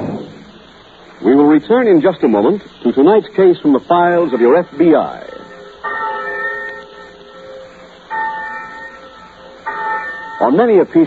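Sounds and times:
large college campus bell tolling: 0.0s - 1.0s, 3.5s - 11.0s
faint steady hum: 0.0s - 11.0s
speech: 1.2s - 5.3s, 10.4s - 11.0s.

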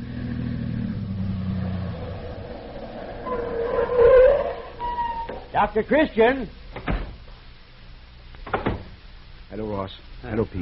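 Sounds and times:
car arriving: 0.0s - 5.5s
speech: 5.5s - 6.9s, 9.8s - 10.6s.

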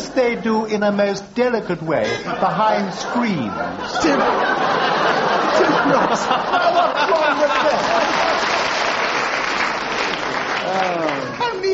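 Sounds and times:
speech: 0.2s - 7.6s, 10.7s - 11.7s
scattered laughter: 2.1s - 8.3s
audience applause: 4.8s - 11.7s.

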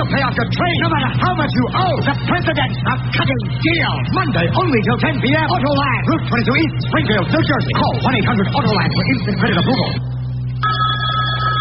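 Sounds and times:
speech: 0.1s - 10.2s
telephone ringing: 10.6s - 11.6s.

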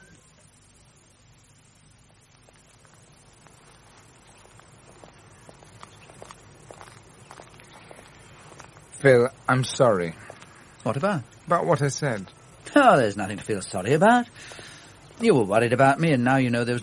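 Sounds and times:
low hum: 0.0s - 16.8s
footsteps of two people walking together: 2.1s - 11.0s
speech: 9.0s - 16.8s.

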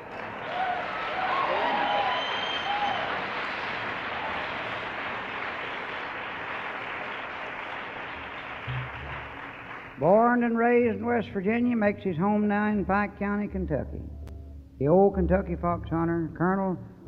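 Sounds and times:
audience applause: 0.0s - 10.0s
speech: 10.0s - 14.2s, 14.8s - 16.9s.

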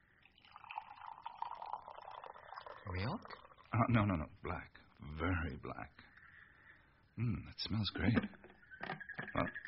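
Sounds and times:
speech: 2.9s - 6.1s, 7.2s - 8.4s
frogs croaking on a warm night: 8.4s - 9.6s.

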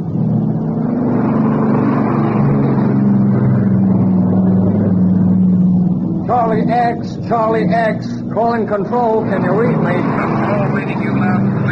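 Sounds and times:
patrol plane engine droning circling overhead: 0.0s - 11.6s
speech: 6.9s - 11.6s.

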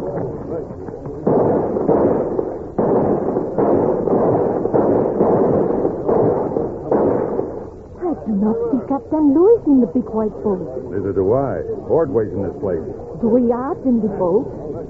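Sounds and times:
rifle volley fired as a salute: 0.0s - 7.9s
speech: 8.4s - 14.8s.

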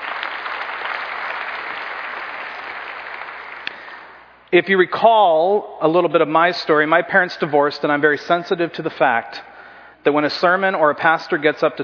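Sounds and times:
audience applauding: 0.0s - 4.2s
speech: 4.5s - 11.8s.

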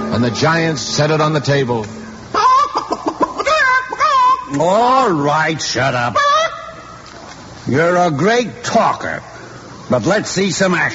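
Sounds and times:
speech: 0.2s - 2.0s, 4.5s - 6.3s, 7.7s - 9.3s, 9.9s - 10.9s
person imitating a great yellow hen as big as an ostrich: 2.3s - 4.6s.

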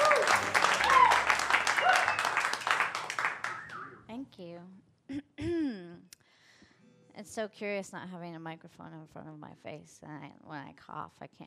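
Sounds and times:
voices whooping: 0.0s - 2.6s
audience applause in a pub: 0.0s - 3.9s
speech: 7.3s - 11.4s.

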